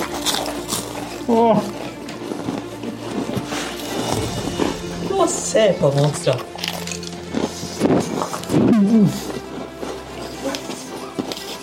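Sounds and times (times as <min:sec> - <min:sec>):
people chewing food vigorously in eating contest: 0:00.0 - 0:04.9, 0:06.3 - 0:11.6
speech: 0:01.3 - 0:01.7, 0:05.3 - 0:06.6
steady low hum: 0:03.4 - 0:07.6.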